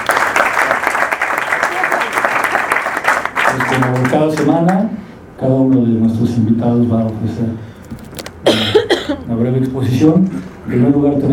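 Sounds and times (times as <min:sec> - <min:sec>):
audience applause at a seminar: 0:00.0 - 0:04.5
speech: 0:03.8 - 0:07.7, 0:09.4 - 0:11.3.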